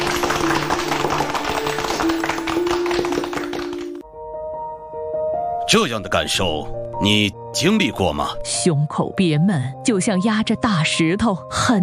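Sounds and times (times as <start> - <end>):
audience applause: 0.0 - 4.0
speech: 5.7 - 11.8.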